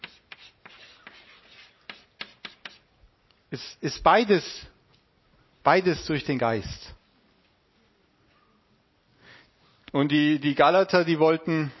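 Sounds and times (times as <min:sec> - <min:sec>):
handwriting scratching: 0:00.0 - 0:02.9
speech: 0:03.5 - 0:04.7, 0:05.6 - 0:06.8, 0:10.0 - 0:11.7.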